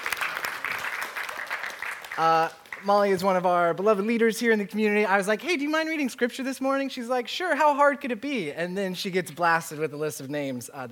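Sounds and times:
audience applause: 0.0 - 2.9
speech: 2.2 - 10.9.

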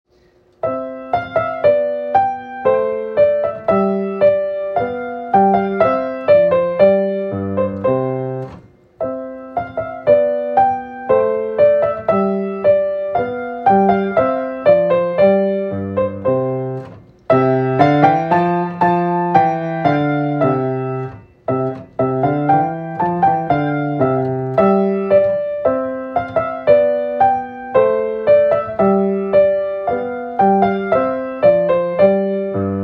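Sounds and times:
gavotte on piano: 0.6 - 32.8.

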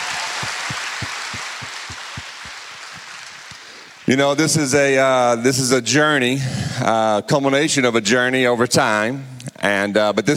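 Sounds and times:
audience applause: 0.0 - 4.1
speech: 4.1 - 10.3.

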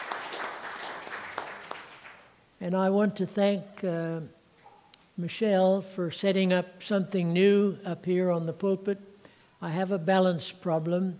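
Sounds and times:
audience clapping: 0.0 - 2.4
speech: 2.6 - 4.4, 5.2 - 11.1.

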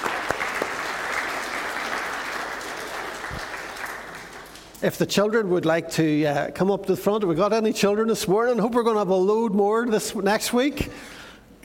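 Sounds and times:
audience applauding: 0.0 - 4.8
speech: 4.8 - 11.1.

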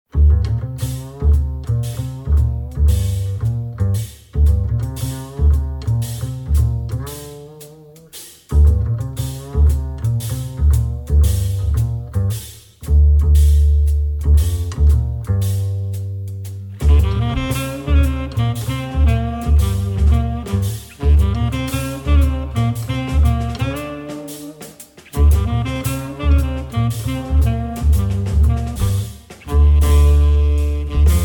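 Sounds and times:
blues music: 0.1 - 31.2.

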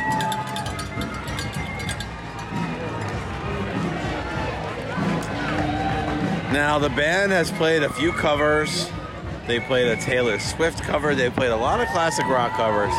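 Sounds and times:
bright metallic clinks: 0.0 - 3.2
marathon spectators cheering: 0.0 - 10.4, 11.6 - 12.9
speech: 6.5 - 12.9.

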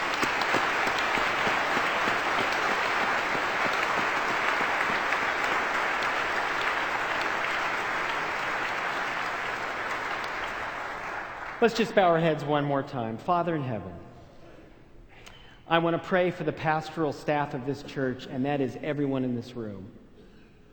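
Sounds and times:
audience applause in a church: 0.0 - 11.8
speech: 11.6 - 14.0, 15.7 - 20.0.

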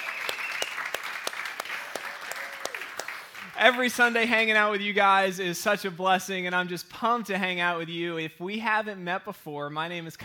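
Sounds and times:
church congregation applauding its worship band: 0.0 - 4.4
speech: 3.6 - 10.2.

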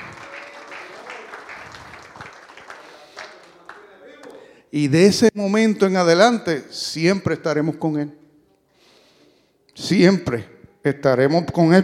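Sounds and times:
audience applause: 0.0 - 4.4
speech: 4.7 - 8.2, 9.9 - 11.8.

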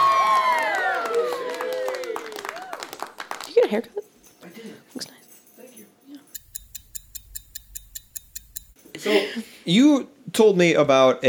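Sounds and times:
crowd cheering: 0.0 - 3.2
applause: 0.0 - 3.9
speech: 3.7 - 5.1, 9.0 - 11.2.

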